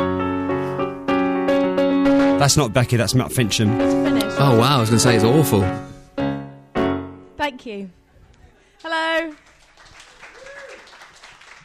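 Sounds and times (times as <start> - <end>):
piano walk-on music: 0.0 - 7.6
speech: 2.4 - 5.9, 7.6 - 8.0, 8.8 - 9.5
faint audience applause at a live show: 8.7 - 11.6.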